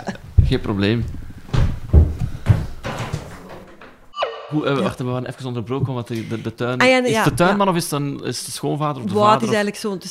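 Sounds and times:
speech: 0.0s - 1.2s, 4.5s - 10.0s
dull thuds and knocks: 0.3s - 4.1s
door being opened: 1.5s - 4.7s.

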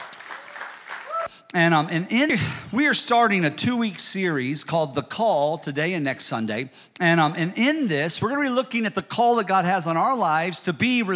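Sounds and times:
audience applauding: 0.0s - 1.4s
speech: 1.5s - 11.1s.

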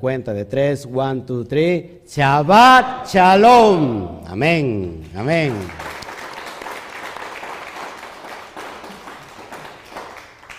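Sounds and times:
speech: 0.0s - 5.9s
audience applause: 5.3s - 10.5s.

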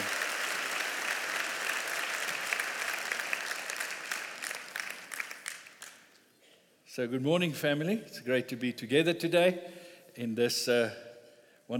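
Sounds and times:
audience applause: 0.0s - 6.1s
speech: 7.0s - 11.0s.

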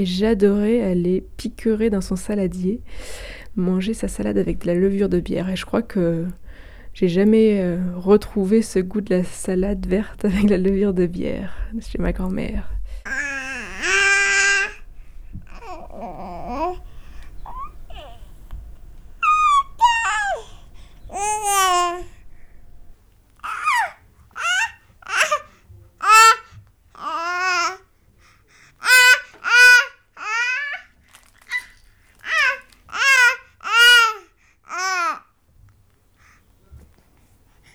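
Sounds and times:
speech: 0.0s - 6.4s, 7.0s - 13.9s
baby babbling: 13.1s - 22.2s, 23.4s - 27.8s, 28.8s - 30.8s, 31.5s - 35.2s.

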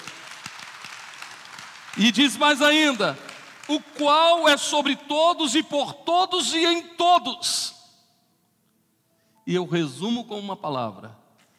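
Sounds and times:
audience applause: 0.0s - 4.4s
speech: 2.0s - 7.8s, 9.5s - 11.2s.

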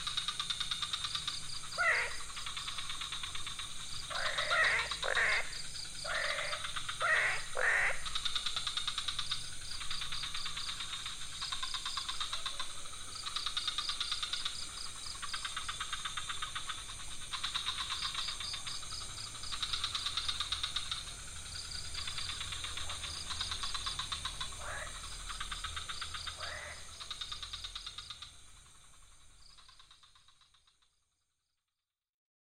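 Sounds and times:
frog chorus: 0.0s - 31.6s.

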